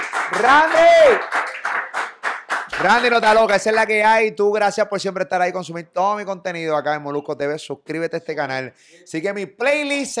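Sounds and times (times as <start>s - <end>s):
audience applause: 0.0s - 3.9s
speech: 0.4s - 1.4s, 2.8s - 10.1s.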